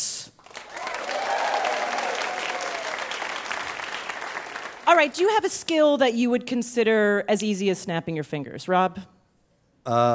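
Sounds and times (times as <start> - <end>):
audience applause for game show contestants at a live bar trivia show: 0.4 - 5.4
speech: 5.0 - 9.1, 9.8 - 10.1.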